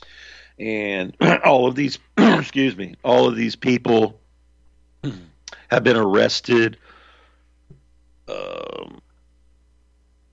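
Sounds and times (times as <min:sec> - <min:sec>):
speech: 0:00.6 - 0:04.2, 0:05.0 - 0:06.8, 0:08.3 - 0:09.0
person clearing throat: 0:02.2 - 0:02.5, 0:05.0 - 0:05.4, 0:08.3 - 0:09.0
person coughing: 0:02.2 - 0:02.6, 0:05.0 - 0:05.3.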